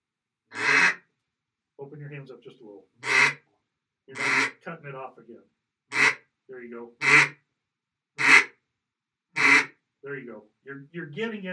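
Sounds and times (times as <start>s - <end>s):
basic duck quack on a duck call: 0.5s - 1.0s, 3.0s - 3.4s, 4.2s - 4.6s, 5.9s - 6.2s, 7.0s - 7.4s, 8.2s - 8.6s, 9.4s - 9.8s
speech: 1.8s - 3.4s, 4.1s - 5.6s, 6.5s - 7.4s, 10.0s - 11.5s.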